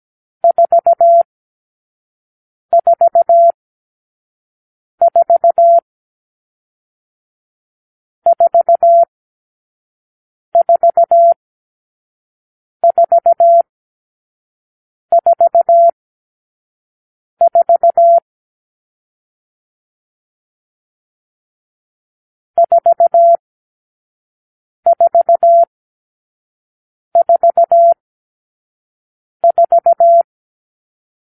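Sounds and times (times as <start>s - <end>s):
morse code beeps: 0.4s - 1.3s, 2.7s - 3.6s, 5.0s - 5.8s, 8.3s - 9.1s, 10.6s - 11.4s, 12.8s - 13.7s, 15.1s - 16.0s, 17.4s - 18.2s, 22.6s - 23.4s, 24.9s - 25.7s, 27.2s - 28.0s, 29.4s - 30.3s.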